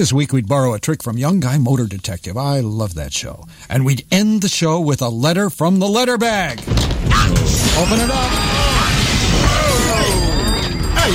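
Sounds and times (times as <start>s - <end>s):
speech: 0.0s - 8.8s
glass shattering sound effect: 6.6s - 11.1s
glass shards tinkling: 7.5s - 11.1s.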